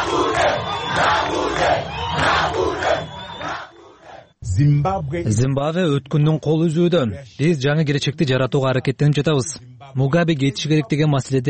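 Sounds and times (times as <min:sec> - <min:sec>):
crowd of protesters in Harare, Zimbabwe, chanting and shouting: 0:00.0 - 0:05.4
speech: 0:04.6 - 0:11.4.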